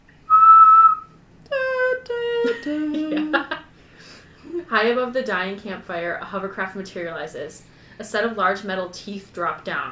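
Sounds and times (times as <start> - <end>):
whistled imitation of bird's high-pitched warning call: 0.3 - 1.1
speech: 2.4 - 3.6, 4.7 - 9.9.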